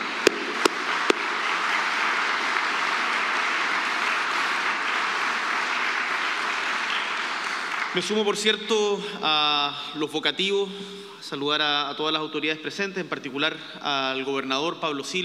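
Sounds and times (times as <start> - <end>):
audience applause: 0.0 - 8.9
speech: 8.0 - 15.2.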